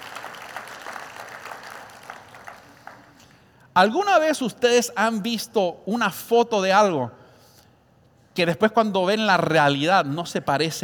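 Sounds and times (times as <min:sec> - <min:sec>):
audience applause: 0:00.0 - 0:03.2
speech: 0:03.8 - 0:07.2, 0:08.4 - 0:10.8.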